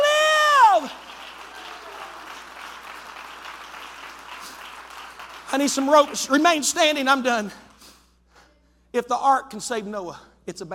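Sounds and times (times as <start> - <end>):
audience clapping: 0.0 - 7.8
speech: 5.6 - 7.6, 9.0 - 10.7.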